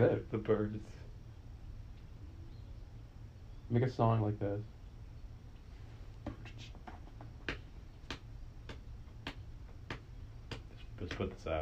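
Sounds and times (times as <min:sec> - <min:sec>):
speech: 0:00.0 - 0:01.0, 0:03.7 - 0:04.7, 0:11.0 - 0:11.5
foot tapping the ground: 0:06.2 - 0:11.5.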